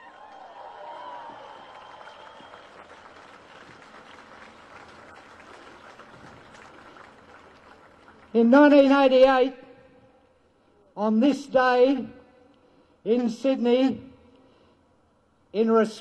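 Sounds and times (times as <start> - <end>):
crowd cheering: 0.0 - 8.2
speech: 8.4 - 9.6, 11.0 - 12.2, 13.0 - 14.0, 15.6 - 15.9.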